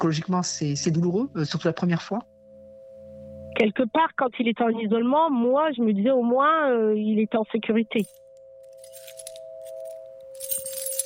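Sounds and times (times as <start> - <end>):
speech: 0.0 - 2.3, 3.6 - 8.2
steady high-pitched hum: 0.0 - 11.0
keys jangling: 8.0 - 11.0.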